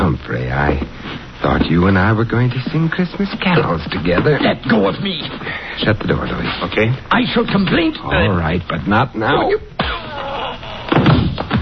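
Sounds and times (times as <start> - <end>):
speech: 0.2 - 1.0, 1.6 - 10.0
heavy thud of a blow: 10.9 - 11.6.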